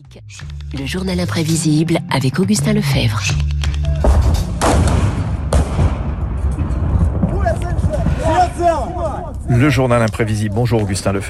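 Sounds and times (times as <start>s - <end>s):
dense rumbling background: 0.0s - 11.2s
speech: 0.1s - 3.6s, 8.6s - 11.2s
people shouting: 3.8s - 4.3s, 7.3s - 9.6s
street combat gunfire and artillery in Kharkiv: 4.1s - 8.4s.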